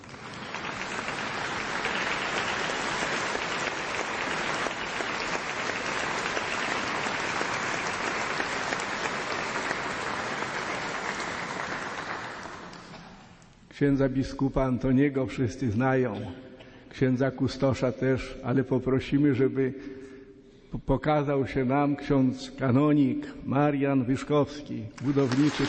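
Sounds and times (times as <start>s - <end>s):
applause: 0.0s - 13.3s, 25.0s - 25.6s
speech: 13.8s - 16.4s, 17.0s - 20.0s, 20.7s - 25.6s.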